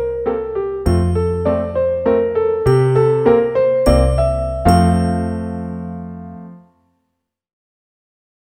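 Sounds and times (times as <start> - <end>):
slow piano allegro in F major: 0.0 - 6.7.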